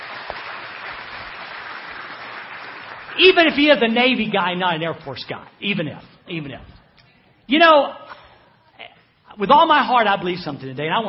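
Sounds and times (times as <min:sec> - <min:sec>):
audience applause: 0:00.0 - 0:03.5
speech: 0:03.2 - 0:06.8, 0:07.5 - 0:08.1, 0:09.4 - 0:11.0.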